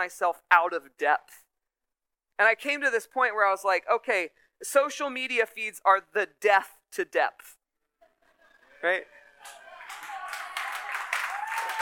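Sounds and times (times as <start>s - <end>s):
speech: 0.0s - 1.4s, 2.4s - 7.6s, 8.8s - 9.6s
audience clapping: 9.4s - 11.8s.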